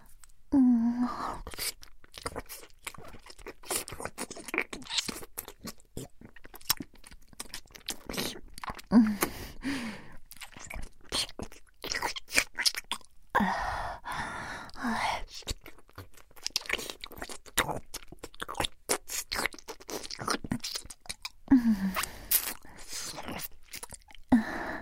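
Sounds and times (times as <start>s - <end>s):
ear-eating ASMR mouth sounds, chewing, licking and smacking: 1.4s - 8.9s, 10.2s - 13.2s, 15.3s - 24.3s
breaths: 8.9s - 10.2s, 13.4s - 15.2s, 21.5s - 23.1s, 24.3s - 24.8s.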